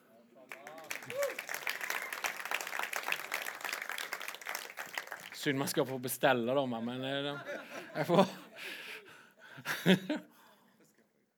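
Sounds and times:
audience applause: 0.5 - 6.0
speech: 5.4 - 8.8, 9.8 - 10.3
laughter: 6.7 - 10.4.

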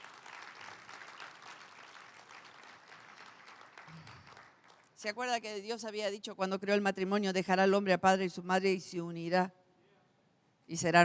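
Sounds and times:
audience applause: 0.0 - 4.9
speech: 5.0 - 9.6, 10.7 - 11.0.

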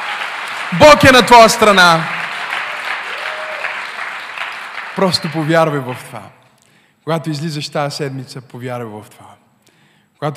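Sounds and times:
crowd applause: 0.0 - 6.1
speech: 0.7 - 2.2, 5.0 - 6.4, 7.1 - 9.4, 10.2 - 10.3.

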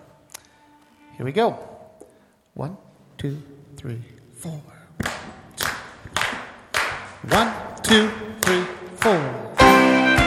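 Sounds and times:
speech: 1.2 - 1.7, 2.6 - 4.8, 7.2 - 9.5
audience clapping along in rhythm: 5.0 - 10.2.

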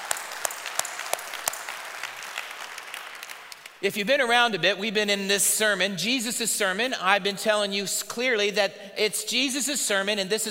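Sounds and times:
church congregation clapping in welcome: 0.0 - 3.9
speech: 3.8 - 10.4.

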